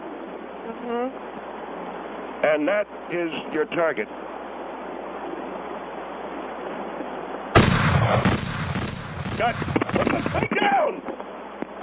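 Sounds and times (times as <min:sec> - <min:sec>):
noisy rumble: 0:00.0 - 0:11.8
speech: 0:00.7 - 0:01.5, 0:02.4 - 0:04.3, 0:09.4 - 0:11.2
gunshots during target practice: 0:07.5 - 0:10.6.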